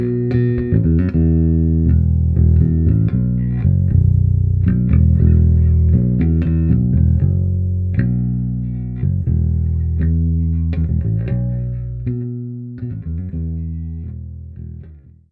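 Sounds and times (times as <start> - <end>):
bass guitar: 0.0 - 15.2.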